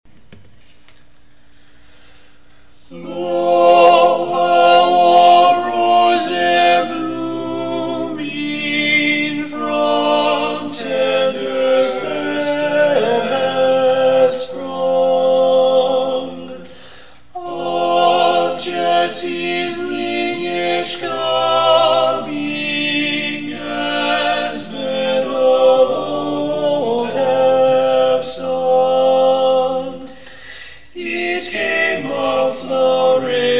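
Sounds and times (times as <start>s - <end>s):
tenor singing: 2.9s - 16.7s, 17.4s - 30.1s, 31.0s - 33.5s.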